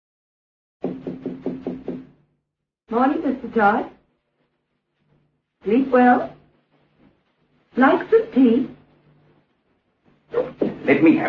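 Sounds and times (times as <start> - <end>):
knocks on a door: 0.8 - 2.2
speech: 2.9 - 4.0, 5.6 - 6.4, 7.8 - 8.8, 10.3 - 11.2
faint low hum: 2.9 - 11.2.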